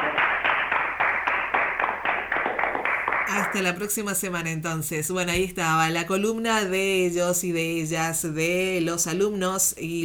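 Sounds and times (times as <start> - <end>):
group applauding: 0.0 - 3.8
speech: 3.3 - 10.0.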